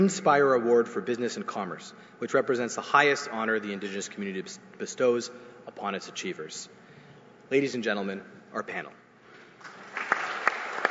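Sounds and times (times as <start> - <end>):
speech: 0.0 - 6.8, 7.5 - 9.0
audience applause: 9.6 - 10.8.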